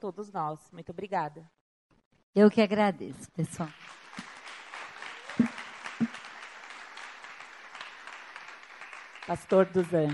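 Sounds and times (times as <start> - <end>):
speech: 0.0 - 1.6, 2.3 - 4.3, 9.3 - 10.1
audience applause: 3.8 - 10.1.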